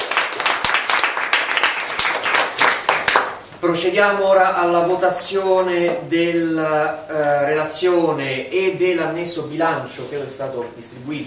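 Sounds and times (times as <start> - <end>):
room full of people applauding: 0.0 - 3.4
speech: 3.6 - 11.2.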